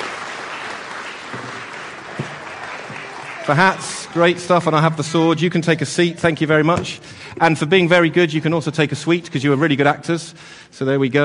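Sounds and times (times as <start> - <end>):
audience applause: 0.0 - 4.6
speech: 3.5 - 11.2.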